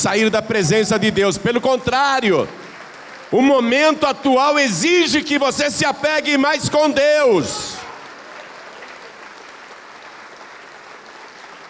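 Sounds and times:
speech: 0:00.0 - 0:02.7, 0:03.3 - 0:07.8
audience applauding: 0:00.5 - 0:05.5, 0:06.2 - 0:11.6.

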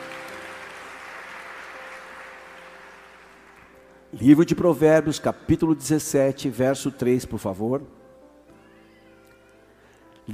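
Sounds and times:
audience applause: 0:00.0 - 0:03.9
speech: 0:04.1 - 0:08.0.

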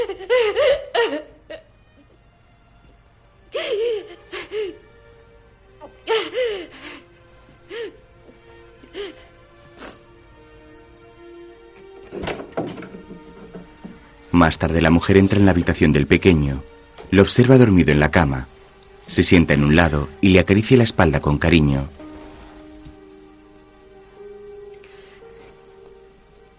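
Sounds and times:
woman crying desperately: 0:00.0 - 0:01.7, 0:03.5 - 0:04.9, 0:05.8 - 0:08.0, 0:08.8 - 0:09.3
speech: 0:14.4 - 0:22.0.

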